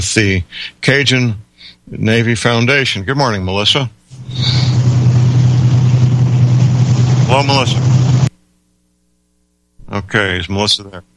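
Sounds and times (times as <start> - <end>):
speech: 0.0 - 4.8, 7.3 - 8.0, 9.9 - 11.1
driving car engine hum over a bad phone connection: 4.2 - 8.3.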